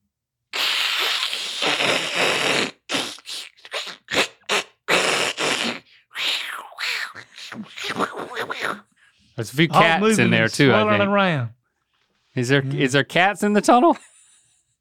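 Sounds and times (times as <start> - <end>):
voice imitating thousands of snakes hissing: 0.5 - 8.9
speech: 9.4 - 11.6, 12.4 - 14.1.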